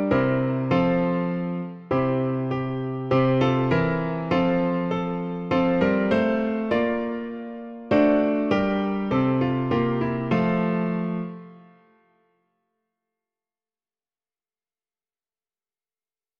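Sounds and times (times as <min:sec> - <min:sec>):
piano: 0:00.0 - 0:12.6.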